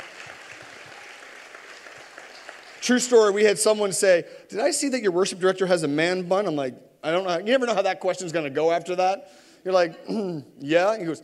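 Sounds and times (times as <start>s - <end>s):
audience applause: 0.0s - 3.4s
speech: 2.8s - 11.2s.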